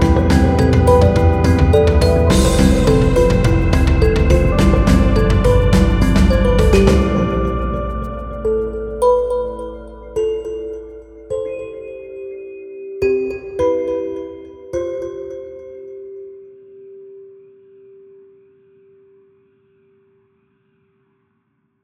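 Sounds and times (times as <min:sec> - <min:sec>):
dark kalimba: 0:00.0 - 0:16.6.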